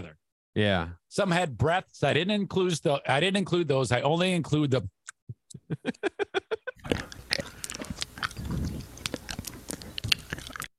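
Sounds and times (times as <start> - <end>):
speech: 0.6 - 5.0, 5.6 - 7.0
laughter: 5.5 - 6.9
loud close-miked crunchy chewing and munching: 6.8 - 10.7.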